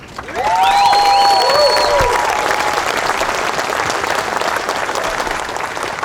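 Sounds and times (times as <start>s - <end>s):
large crowd applause: 0.0s - 6.0s
shrill whoops and whistles: 0.3s - 2.9s.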